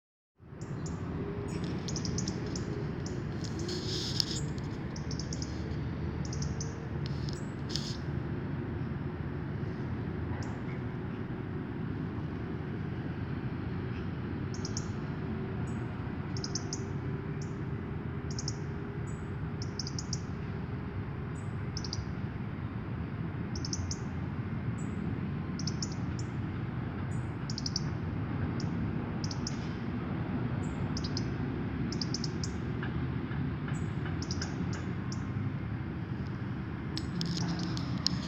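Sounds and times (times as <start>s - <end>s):
low engine-like drone: 0.4s - 38.2s
European robin ticking: 0.6s - 8.0s, 13.9s - 15.0s, 16.3s - 17.6s, 18.3s - 20.3s, 21.4s - 22.1s, 23.5s - 24.1s, 25.6s - 26.4s, 27.1s - 28.0s, 28.6s - 29.7s, 30.6s - 32.9s, 33.7s - 35.4s.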